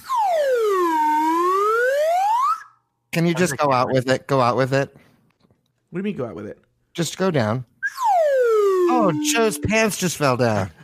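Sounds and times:
slide whistle: 0.0s - 2.9s, 7.8s - 10.3s
speech: 3.1s - 5.0s, 5.9s - 7.7s, 8.9s - 10.8s.

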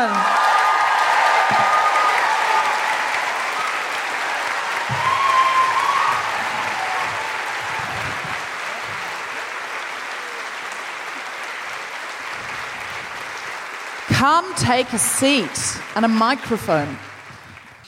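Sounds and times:
live audience whooping in Christchurch: 0.0s - 13.5s
live audience applauding in Christchurch: 0.0s - 17.8s
speech: 14.3s - 17.1s.

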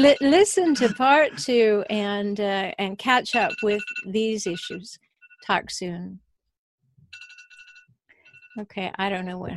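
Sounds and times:
alarm ringing: 0.0s - 1.4s, 3.3s - 5.6s, 7.1s - 8.6s
speech: 0.0s - 6.2s, 8.6s - 9.5s.

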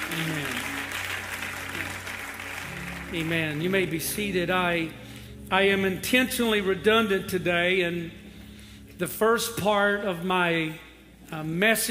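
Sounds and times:
audience clapping: 0.0s - 4.0s
speech: 3.1s - 8.2s, 9.0s - 11.8s.

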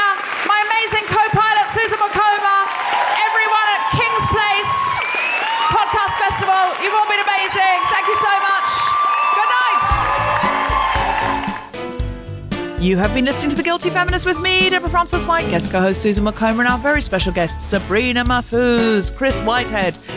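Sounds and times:
audience applause: 0.0s - 11.8s
audience cheering: 2.0s - 11.8s
speech: 12.8s - 20.1s.

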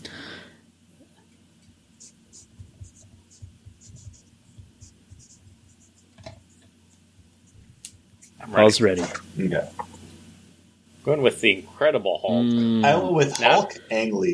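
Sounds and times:
pen scratching on paper writing an answer by hand: 2.0s - 8.4s
speech: 8.4s - 9.9s, 11.1s - 14.3s.

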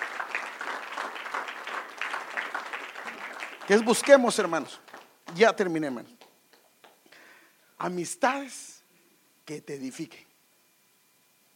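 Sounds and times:
church congregation applauding: 0.0s - 6.3s
speech: 3.7s - 6.2s, 7.8s - 8.7s, 9.5s - 10.3s.

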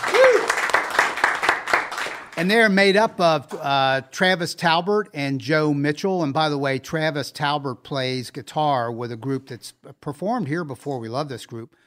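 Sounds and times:
short cheer: 0.0s - 0.8s
audience round of applause: 0.0s - 2.4s
speech: 2.4s - 11.8s.

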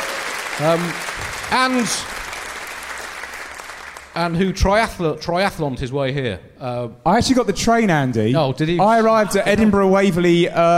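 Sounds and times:
live audience applause: 0.0s - 4.4s
speech: 0.6s - 2.2s, 4.2s - 10.7s.

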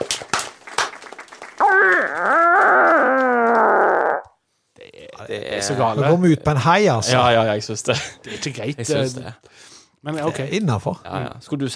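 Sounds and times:
recorded squealing fart: 1.6s - 4.4s
speech: 5.3s - 11.7s.

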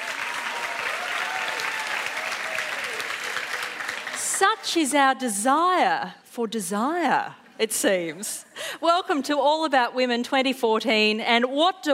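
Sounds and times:
audience applause: 0.0s - 4.5s
speech: 4.4s - 11.9s.

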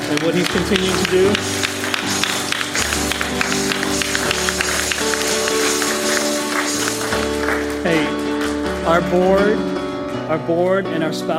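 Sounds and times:
crowd clapping: 0.0s - 10.4s
speech: 0.1s - 1.7s, 9.0s - 11.3s
sustained musical tones: 0.4s - 8.8s.

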